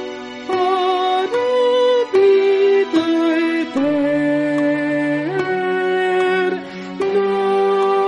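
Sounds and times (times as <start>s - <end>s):
soprano singing: 0.4s - 8.0s.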